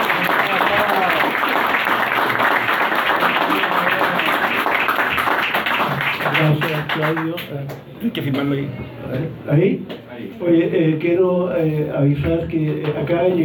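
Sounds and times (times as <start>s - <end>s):
audience applause: 0.0s - 7.4s
speech: 7.1s - 13.4s.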